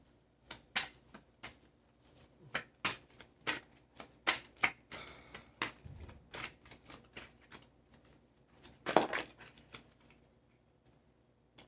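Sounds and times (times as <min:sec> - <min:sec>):
tarot cards shuffled: 0:00.4 - 0:10.2
tarot cards clattering as they fall out: 0:02.5 - 0:10.2.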